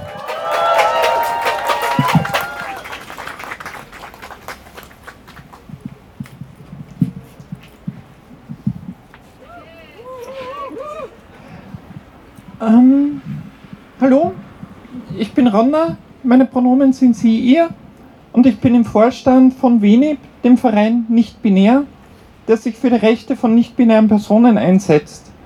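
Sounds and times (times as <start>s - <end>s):
whoops and shouts: 0.0s - 3.1s, 9.4s - 11.2s
voices calling out: 0.0s - 4.7s, 9.3s - 15.5s
crowd applause and cheering at a demonstration: 0.0s - 5.9s
speech: 15.6s - 17.8s, 18.4s - 21.9s, 22.5s - 25.3s.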